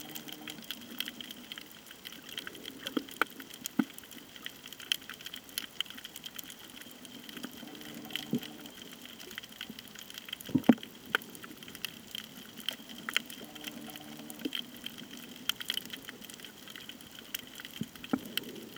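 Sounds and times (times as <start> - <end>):
snorkeling at Nang Yuan off Koh Tao: 0.0 - 18.7.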